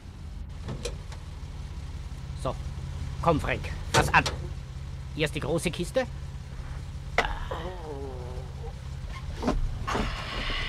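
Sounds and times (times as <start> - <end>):
steady low car engine rumble: 0.0 - 10.6
speech: 2.4 - 4.5, 5.2 - 6.2
car door opening: 9.1 - 10.6.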